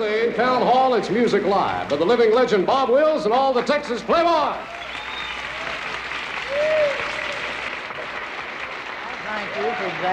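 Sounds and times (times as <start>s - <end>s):
speech: 0.0s - 4.8s, 9.4s - 10.1s
large audience applause: 4.6s - 10.1s.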